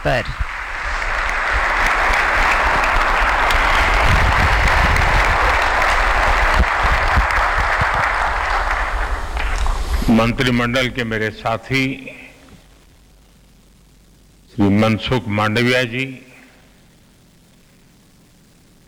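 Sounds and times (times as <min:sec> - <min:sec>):
speech: 0:00.0 - 0:00.5, 0:10.1 - 0:12.2, 0:14.6 - 0:16.3
thunderous applause from a large audience: 0:00.0 - 0:12.2.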